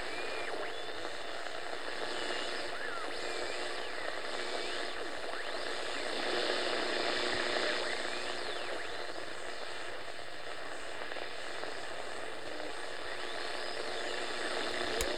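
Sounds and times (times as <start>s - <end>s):
radio static noise: 0.0s - 15.1s.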